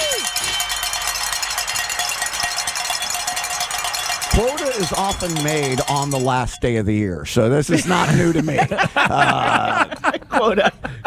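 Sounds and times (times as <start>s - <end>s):
bells ringing: 0.0s - 7.2s
speech: 4.4s - 11.0s
laughter: 7.7s - 11.0s.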